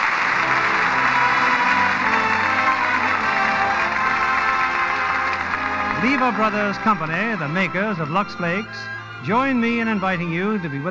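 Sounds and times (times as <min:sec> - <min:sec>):
studio audience applause: 0:00.0 - 0:07.8
speech: 0:06.1 - 0:10.8.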